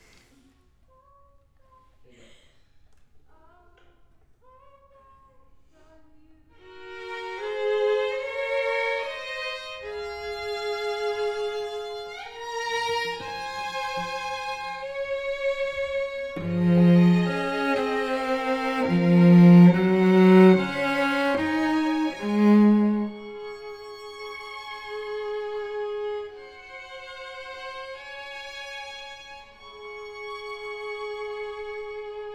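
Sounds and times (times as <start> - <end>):
cello: 6.5 - 32.3.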